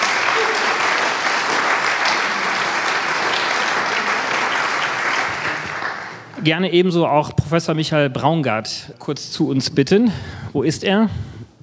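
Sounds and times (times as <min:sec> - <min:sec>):
audience applause: 0:00.0 - 0:06.4
speech: 0:06.4 - 0:11.4.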